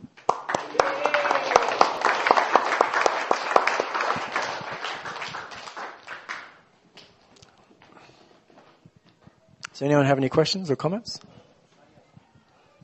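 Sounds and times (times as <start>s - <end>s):
audience round of applause: 0.2s - 6.6s
speech: 9.8s - 11.3s.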